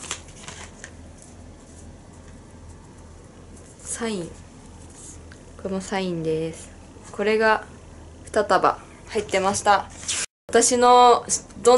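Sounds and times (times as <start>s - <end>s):
stack of women's pro wrestling cards being handled and riffled: 0.0s - 2.4s
speech: 4.0s - 4.4s, 5.6s - 7.7s, 8.4s - 11.7s.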